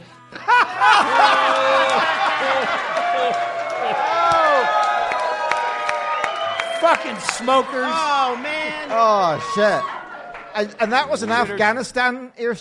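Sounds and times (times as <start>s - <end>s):
group of people laughing loudly with exaggerated fake laughter: 0.3s - 5.1s, 6.8s - 11.9s
people whooping: 0.4s - 10.7s
applause: 0.9s - 11.0s
speech: 6.9s - 10.0s, 10.6s - 12.5s.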